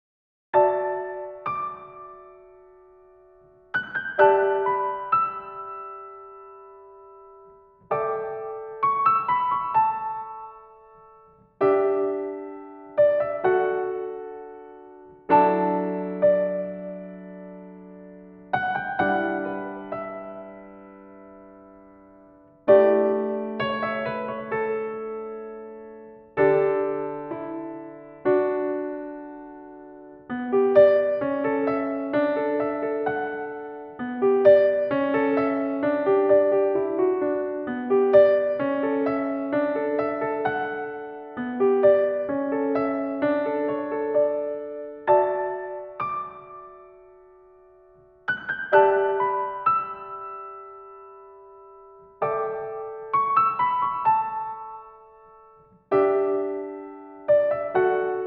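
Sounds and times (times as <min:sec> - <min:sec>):
piano: 0:00.5 - 0:58.2.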